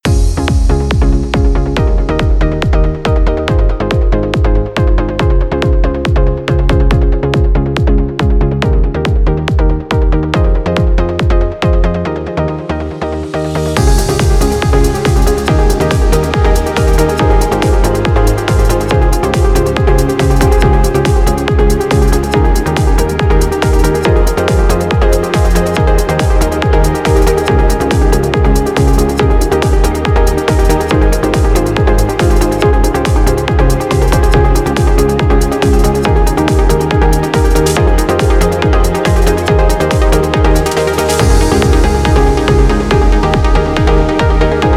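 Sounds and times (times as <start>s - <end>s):
sweet trance music: 0.0s - 44.7s.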